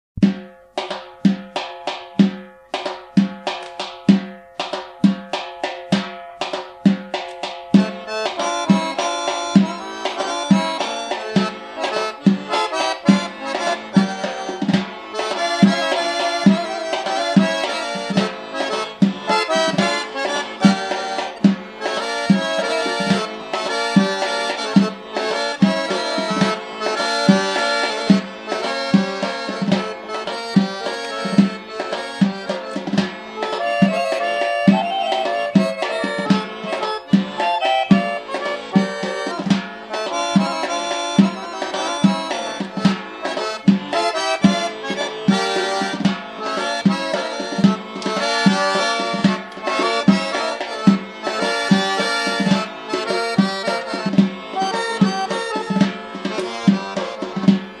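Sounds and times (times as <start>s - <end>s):
Georgian folk dance music: 0.2s - 57.7s.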